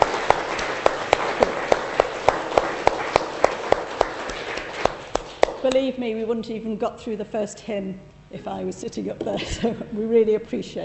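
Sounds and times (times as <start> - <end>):
round of applause: 0.0 - 5.7
speech: 5.7 - 10.8.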